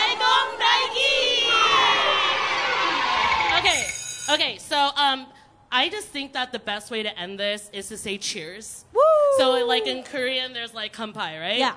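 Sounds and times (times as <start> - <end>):
podcast jingle with children shouting and cheering: 0.0 - 3.6
speech: 4.4 - 11.7.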